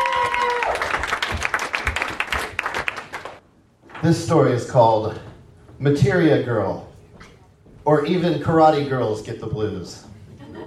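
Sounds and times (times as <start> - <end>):
audience clapping: 0.0 - 3.4
speech: 4.0 - 6.9, 7.9 - 10.1.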